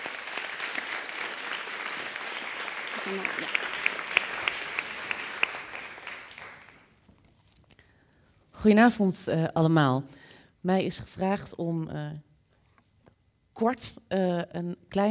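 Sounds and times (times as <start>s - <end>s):
audience applause: 0.0s - 6.9s
speech: 3.0s - 3.6s, 8.6s - 12.3s, 13.6s - 15.0s.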